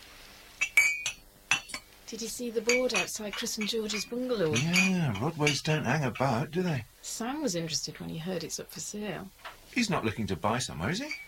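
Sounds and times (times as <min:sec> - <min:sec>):
ceramic mugs clinking as they're cleared: 0:00.6 - 0:01.9, 0:02.6 - 0:06.8, 0:10.9 - 0:11.2
speech: 0:02.1 - 0:11.2.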